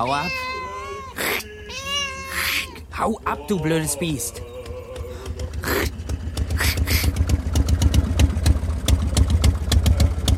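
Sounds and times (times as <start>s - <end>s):
speech: 0.0s - 0.7s, 3.0s - 4.5s
car engine running: 2.9s - 10.3s.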